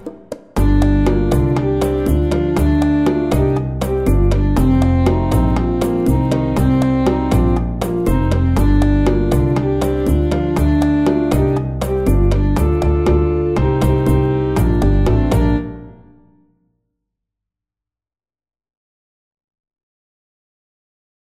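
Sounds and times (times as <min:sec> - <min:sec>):
driving saxophones: 0:00.6 - 0:15.9.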